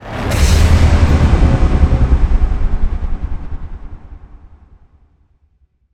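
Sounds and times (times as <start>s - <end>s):
modulated stinger: 0.0s - 5.0s.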